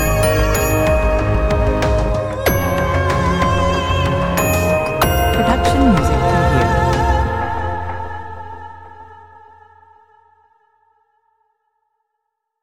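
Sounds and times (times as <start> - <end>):
commercial: 0.0 - 10.1.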